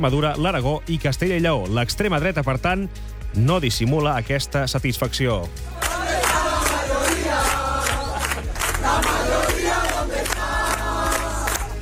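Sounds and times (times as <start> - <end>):
speech: 0.0 - 5.8
political rally crowd chanting slogans: 5.8 - 11.8.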